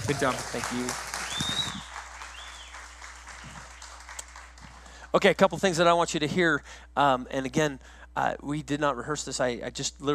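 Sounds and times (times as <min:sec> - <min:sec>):
audience applause: 0:00.0 - 0:05.0
speech: 0:00.1 - 0:01.6, 0:05.2 - 0:10.1.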